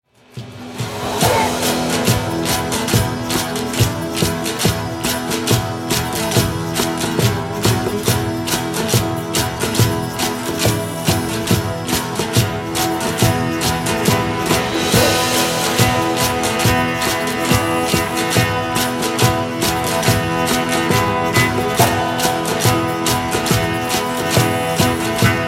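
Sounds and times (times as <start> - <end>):
medieval tavern ambience: 0.2 - 25.4.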